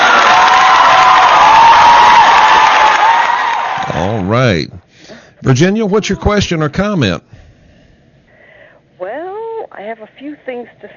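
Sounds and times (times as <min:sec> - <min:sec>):
applause sound effect: 0:00.0 - 0:04.1
speech: 0:04.5 - 0:04.8, 0:05.4 - 0:07.4, 0:09.8 - 0:10.9.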